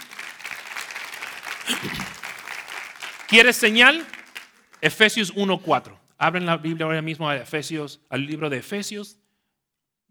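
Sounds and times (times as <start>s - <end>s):
audience applause: 0.0s - 4.9s
speech: 1.7s - 2.2s, 3.3s - 4.2s, 4.8s - 9.2s.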